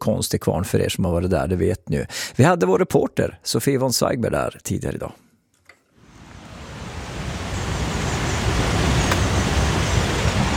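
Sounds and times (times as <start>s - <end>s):
speech: 0.0s - 5.2s
Vindelforsen rapids on the Vindel River roaring: 6.1s - 10.5s.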